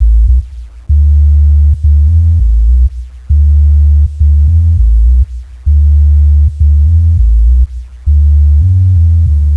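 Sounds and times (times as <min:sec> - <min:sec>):
deep bass: 0:00.0 - 0:09.5.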